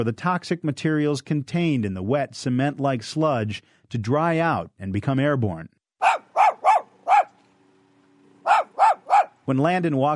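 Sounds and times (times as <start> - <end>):
speech: 0.0 - 5.8, 9.5 - 10.1
Shih Tzu dogs barking: 6.0 - 7.4, 8.4 - 9.4.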